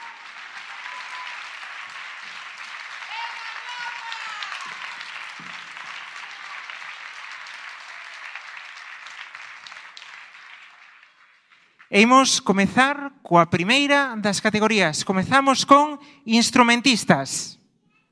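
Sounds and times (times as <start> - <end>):
audience applause: 0.0 - 12.3
speech: 11.9 - 17.6.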